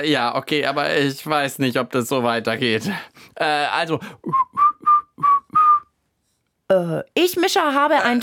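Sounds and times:
speech: 0:00.0 - 0:04.4, 0:06.7 - 0:08.2
person whistling: 0:04.2 - 0:06.0.

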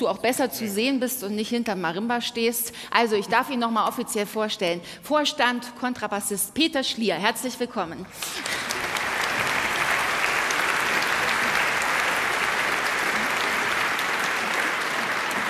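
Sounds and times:
speech: 0:00.0 - 0:08.8
crowd applause: 0:08.2 - 0:15.4.

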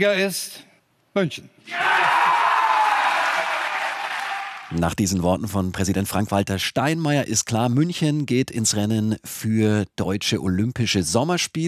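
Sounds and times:
speech: 0:00.0 - 0:02.0, 0:04.7 - 0:11.6
crowd cheering: 0:01.7 - 0:04.8.

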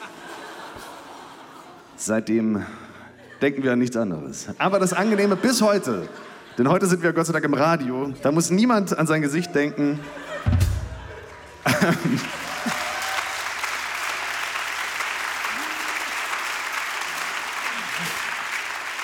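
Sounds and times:
laughter: 0:00.0 - 0:13.3, 0:17.6 - 0:19.0
speech: 0:02.0 - 0:10.2, 0:11.7 - 0:12.4
audience applause: 0:11.0 - 0:19.0.

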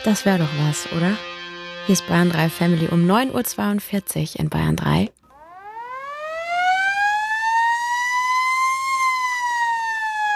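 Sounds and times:
speech: 0:00.0 - 0:05.2
fire engine siren wailing: 0:05.3 - 0:10.3.

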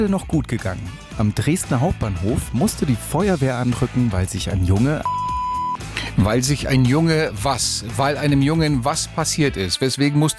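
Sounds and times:
speech: 0:00.0 - 0:05.2, 0:06.2 - 0:10.3
censoring bleep tone: 0:05.0 - 0:06.9.

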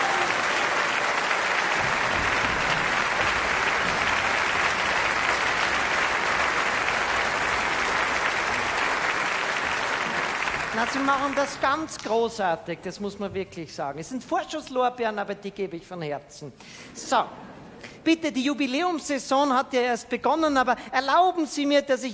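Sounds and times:
audience applause: 0:00.0 - 0:12.0
speech: 0:10.8 - 0:17.4, 0:18.0 - 0:22.1.

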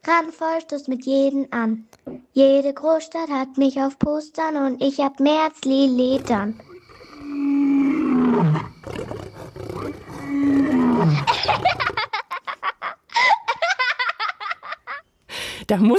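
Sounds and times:
speech: 0:00.0 - 0:06.7, 0:08.2 - 0:09.2, 0:15.7 - 0:15.9
big cat roaring: 0:06.0 - 0:12.0
laughter: 0:11.0 - 0:15.0.

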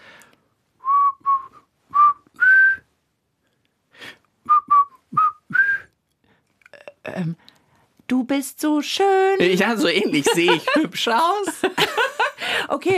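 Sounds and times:
person whistling a short melodic phrase: 0:00.8 - 0:02.9, 0:04.4 - 0:05.9
speech: 0:07.2 - 0:07.5, 0:08.1 - 0:12.9
laughter: 0:09.4 - 0:12.7.

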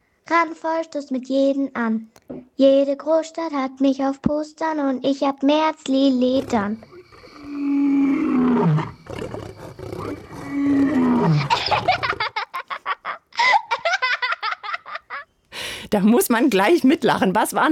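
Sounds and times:
speech: 0:00.3 - 0:06.9, 0:08.6 - 0:09.4, 0:15.9 - 0:17.7
big cat roaring: 0:06.2 - 0:12.3
laughter: 0:11.2 - 0:15.2.

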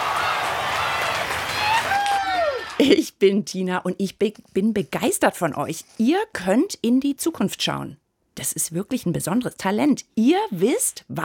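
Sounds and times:
audience applause: 0:00.0 - 0:02.9
speech: 0:02.8 - 0:11.2.

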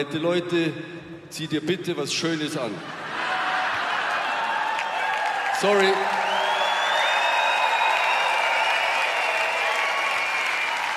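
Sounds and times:
speech: 0:00.0 - 0:03.3, 0:05.6 - 0:06.3
applause: 0:03.7 - 0:10.9.

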